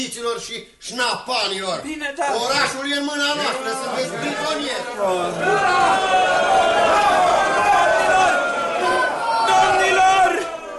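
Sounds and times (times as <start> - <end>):
speech: 0.0 - 7.8
crowd shouting: 3.3 - 10.7.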